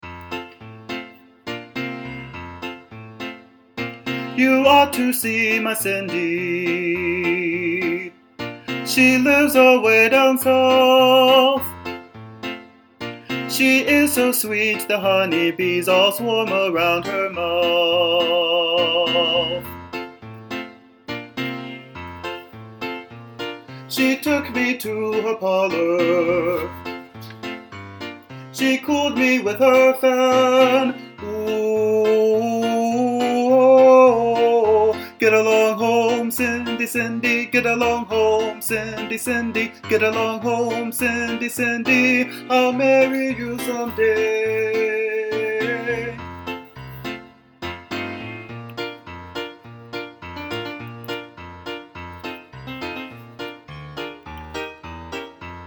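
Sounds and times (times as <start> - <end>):
baritone voice: 4.2 - 11.9, 13.3 - 19.9, 23.8 - 27.5, 28.6 - 47.0, 47.8 - 48.8.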